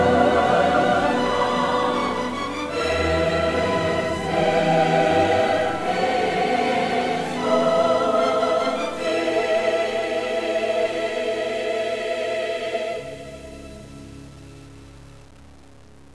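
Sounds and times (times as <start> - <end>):
ambience: 0.0 - 16.1
music: 0.0 - 16.1.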